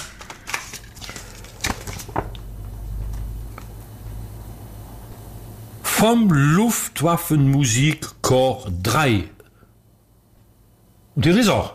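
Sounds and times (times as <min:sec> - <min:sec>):
small sheet of paper crackling as it is unfolded: 0:00.0 - 0:02.4
low steady hum: 0:00.0 - 0:11.7
speech: 0:06.0 - 0:09.4, 0:11.2 - 0:11.7.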